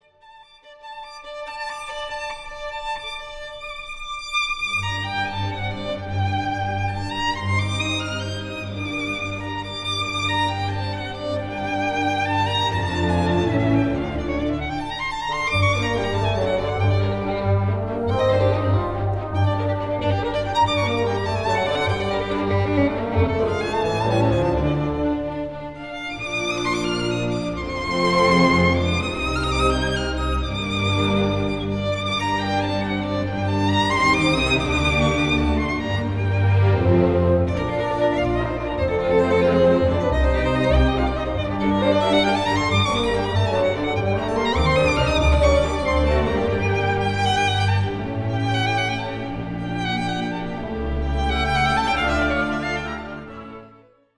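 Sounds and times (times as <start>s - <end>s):
violin: 0.0s - 54.1s.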